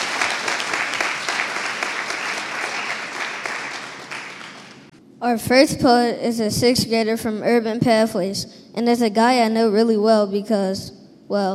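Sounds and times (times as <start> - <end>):
audience applause: 0.0 - 4.9
speech: 5.2 - 11.5.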